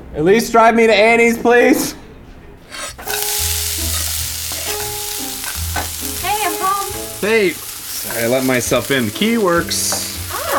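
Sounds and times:
speech: 0:00.1 - 0:02.0, 0:07.2 - 0:09.9
bacon and mussels sizzling in a pan: 0:03.0 - 0:10.5.

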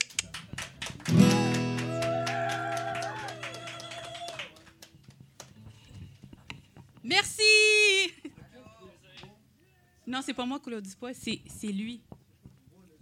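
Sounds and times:
audience applause: 0:00.0 - 0:05.6
speech: 0:10.2 - 0:12.1.

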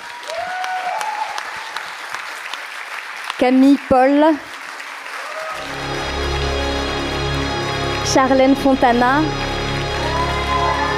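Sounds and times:
audience applauding poets at a reading: 0:00.0 - 0:10.9
speech: 0:03.4 - 0:04.5, 0:08.1 - 0:09.4.

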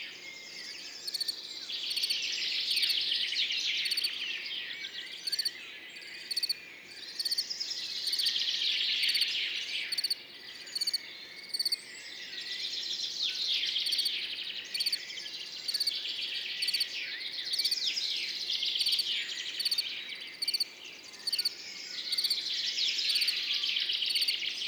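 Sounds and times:
dawn chorus of songbirds: 0:00.0 - 0:24.6
field cricket chirping: 0:01.1 - 0:02.1, 0:03.8 - 0:04.1, 0:05.2 - 0:05.5, 0:06.3 - 0:06.6, 0:09.9 - 0:11.8, 0:14.7 - 0:15.0, 0:15.7 - 0:16.0, 0:16.6 - 0:16.9, 0:18.8 - 0:21.5, 0:22.1 - 0:22.4, 0:24.1 - 0:24.4.

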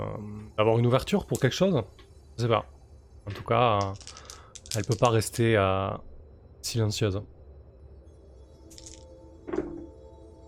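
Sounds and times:
speech: 0:00.0 - 0:07.4
dice being rolled: 0:03.8 - 0:05.3, 0:08.7 - 0:09.1.

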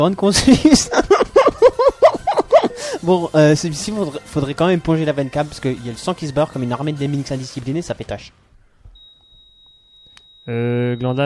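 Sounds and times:
speech: 0:00.0 - 0:01.2, 0:03.0 - 0:08.5, 0:10.4 - 0:11.2
laughter: 0:00.3 - 0:03.1
monitor beep: 0:08.9 - 0:11.2.

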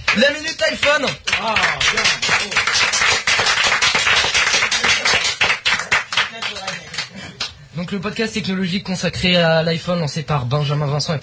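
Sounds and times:
applause: 0:00.0 - 0:07.6
speech: 0:00.1 - 0:03.1, 0:07.8 - 0:11.2.

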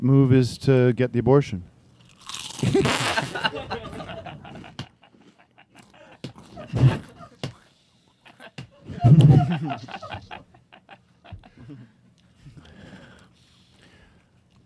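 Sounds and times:
speech: 0:00.0 - 0:01.7, 0:02.6 - 0:04.8, 0:09.0 - 0:10.4
person crunching potato chips: 0:02.0 - 0:03.1
laughter: 0:02.7 - 0:07.6, 0:08.2 - 0:11.9.

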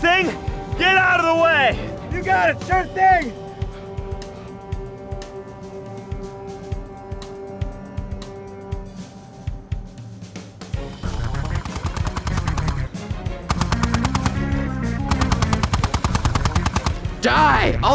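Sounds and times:
speech: 0:00.1 - 0:03.4, 0:17.2 - 0:17.9
machine gun fire: 0:11.0 - 0:17.2.

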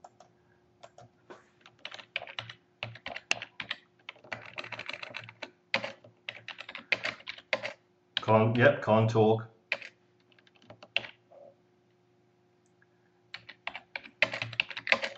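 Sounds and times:
fingers typing on a computer keyboard: 0:00.0 - 0:07.8, 0:09.7 - 0:11.2, 0:13.3 - 0:15.1
faint steady hum: 0:00.0 - 0:15.1
speech: 0:08.3 - 0:09.5.

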